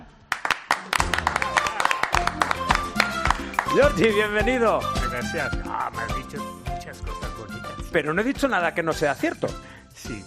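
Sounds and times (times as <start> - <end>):
welcoming applause: 0.3 - 4.2
speech: 3.7 - 10.2.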